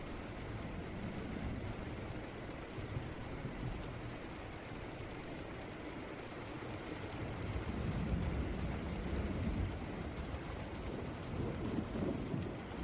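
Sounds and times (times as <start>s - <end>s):
heavy rain hissing with low rumble: 0.0s - 12.8s.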